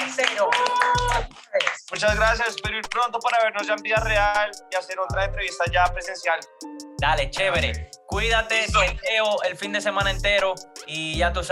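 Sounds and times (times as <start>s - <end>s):
hands clapping in applause: 0.0s - 3.7s
speech: 2.0s - 11.5s.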